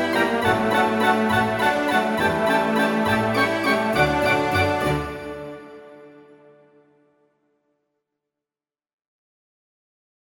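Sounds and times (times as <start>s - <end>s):
waltz music: 0.0s - 6.8s.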